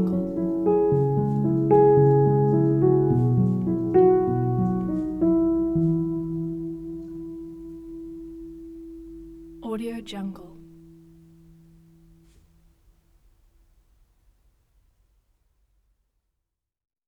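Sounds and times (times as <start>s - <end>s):
inspiring neoclassical piano piece: 0.0s - 12.3s.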